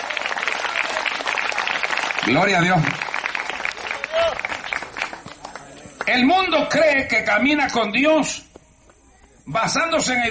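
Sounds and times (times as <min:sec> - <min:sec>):
audience clapping: 0:00.0 - 0:06.3
speech: 0:02.3 - 0:03.0, 0:06.1 - 0:08.5, 0:09.5 - 0:10.2.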